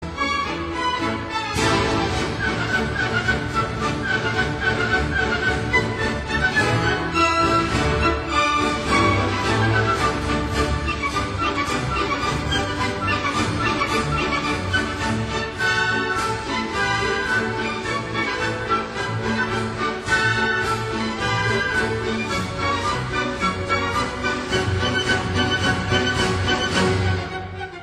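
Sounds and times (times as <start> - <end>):
march music: 0.0 - 27.8.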